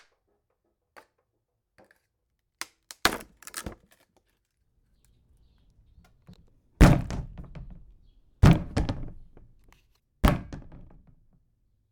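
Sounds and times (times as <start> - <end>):
wood breaking: 2.6 - 4.5, 5.1 - 9.8
wood banging: 3.0 - 4.0, 5.2 - 11.3.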